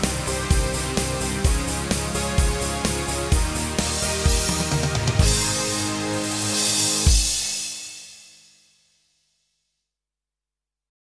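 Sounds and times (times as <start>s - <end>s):
American rock style on Roland EA7 keyboard: 0.0s - 7.6s.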